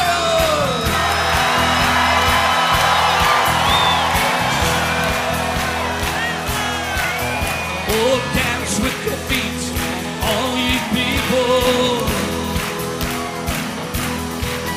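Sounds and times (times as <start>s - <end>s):
church congregation clapping rhythmically during worship: 0.0s - 14.7s
church congregation yelling and whooping during worship: 0.6s - 8.6s.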